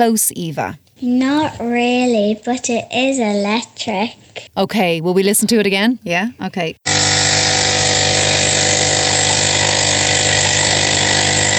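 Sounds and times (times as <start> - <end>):
speech: 0.0 - 6.9
coffee maker brewing: 6.8 - 11.5.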